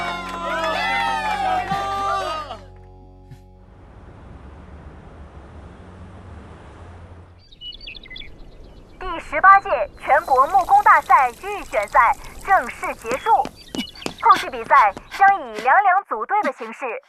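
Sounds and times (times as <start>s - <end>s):
applause: 0.0s - 2.3s
speech: 9.6s - 13.5s, 14.2s - 17.0s.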